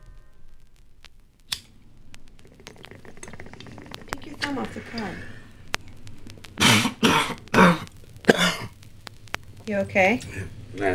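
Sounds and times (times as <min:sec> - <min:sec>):
coughing fit: 0:02.4 - 0:10.9
speech: 0:04.5 - 0:05.4, 0:09.7 - 0:10.9.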